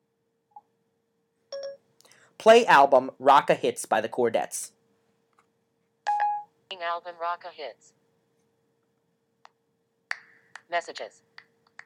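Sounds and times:
speech: 2.4 - 4.8, 6.8 - 8.0, 10.7 - 11.3
iPhone voice control beep: 6.1 - 6.5.

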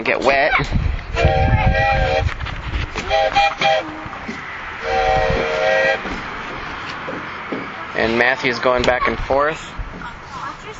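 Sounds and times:
speech: 0.0 - 2.0, 3.1 - 4.1, 8.0 - 10.2
steam train passing: 3.1 - 6.9.

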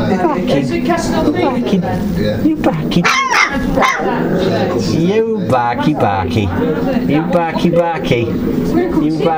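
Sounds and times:
people talking: 0.0 - 9.3
dogs barking and yipping: 3.0 - 4.2
dogs whimpering: 3.0 - 4.8.

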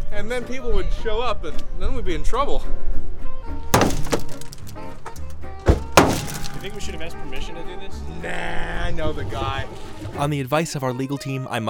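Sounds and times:
speech: 0.1 - 3.6, 6.6 - 11.6
hard thwacks on a car body: 3.8 - 6.7.

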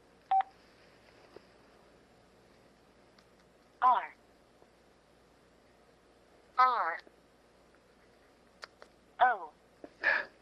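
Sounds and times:
low hiss: 0.0 - 10.3
keypad button beeps: 0.3 - 0.5.

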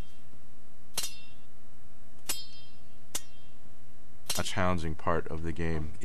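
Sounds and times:
sword clashing sound effect: 0.9 - 1.5, 2.2 - 3.6, 4.3 - 4.6
speech: 4.4 - 6.0.

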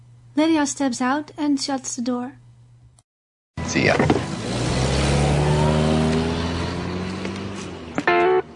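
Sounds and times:
speech: 0.4 - 2.4, 3.7 - 4.2
car driving off, accelerating away: 3.7 - 8.5.

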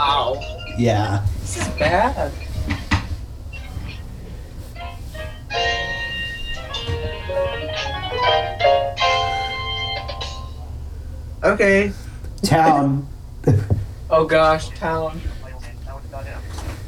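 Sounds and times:
little bells ringing: 0.0 - 0.9, 5.5 - 10.6
speech: 0.4 - 2.8, 11.4 - 15.3.

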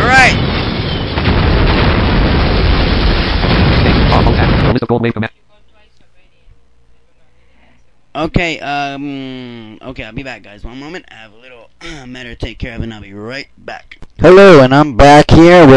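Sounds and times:
torpedoes exploding against a platform: 0.0 - 4.9
speech: 4.9 - 5.4, 8.2 - 15.7.

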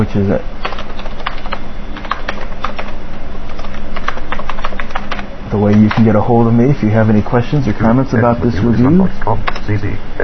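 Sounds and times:
speech: 0.0 - 0.6, 5.5 - 10.2
low hum: 0.0 - 10.2
typing an email address into Outlook Express on a computer keyboard: 0.6 - 6.1.

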